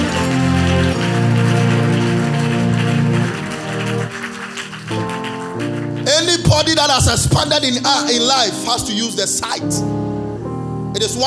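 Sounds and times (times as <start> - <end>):
audience clapping: 0.0 - 7.8
sustained keyboard chords: 0.0 - 11.2
speech: 6.6 - 10.1, 11.0 - 11.2.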